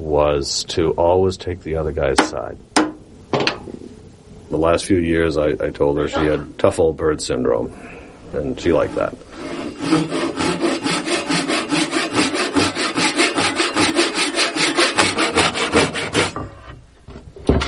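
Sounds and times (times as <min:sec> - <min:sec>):
speech: 0:00.0 - 0:02.8, 0:04.5 - 0:10.2
Japanese pull saw cutting wood: 0:08.8 - 0:16.7.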